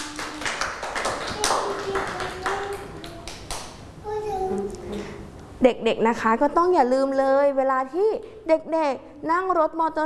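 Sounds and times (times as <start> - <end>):
children clapping: 0.0 - 3.8
speech: 5.6 - 10.0.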